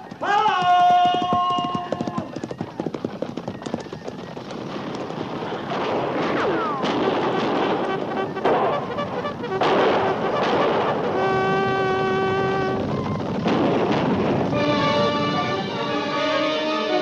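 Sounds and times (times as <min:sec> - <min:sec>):
cavalry horses galloping: 0:00.0 - 0:16.9
gunfire cracks: 0:05.6 - 0:11.4.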